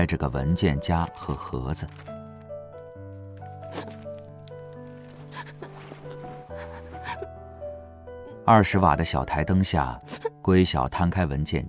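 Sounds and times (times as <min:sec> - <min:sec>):
speech: 0:00.0 - 0:02.2, 0:08.5 - 0:11.6
schoolbag being unzipped and opened: 0:01.9 - 0:07.0.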